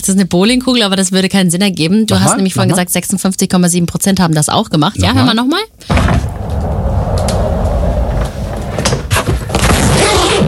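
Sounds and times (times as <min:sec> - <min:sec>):
speech: 0:00.0 - 0:06.8
rolling suitcase rumbling along on its wheels: 0:06.2 - 0:09.6.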